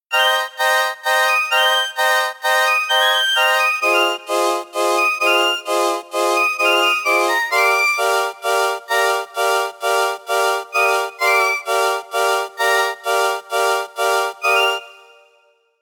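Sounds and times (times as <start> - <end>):
keyboard playing: 0.1 - 15.5.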